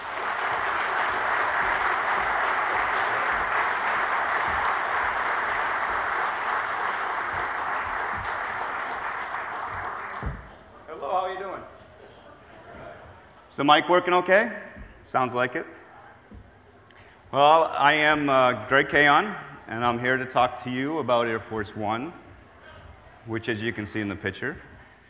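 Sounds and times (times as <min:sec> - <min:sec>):
audience applause welcoming a speaker to an Air Force One talk: 0:00.0 - 0:10.6
speech: 0:13.6 - 0:15.8, 0:17.3 - 0:22.2, 0:23.2 - 0:24.7.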